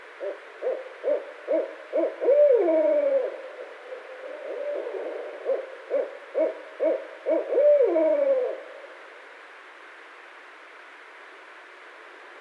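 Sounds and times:
Barred Owl calling: 0.2s - 8.8s.

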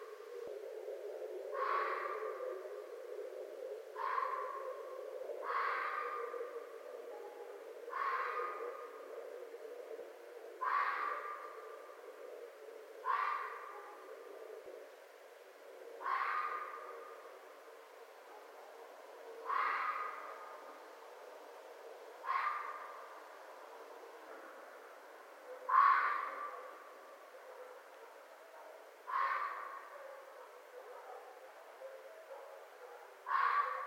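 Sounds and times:
red fox barking: 1.2s - 14.9s, 16.0s - 33.8s.

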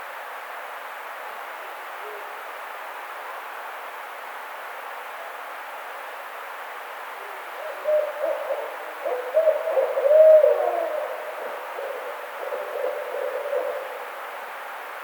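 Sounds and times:
barred owl hooting: 7.3s - 14.2s.

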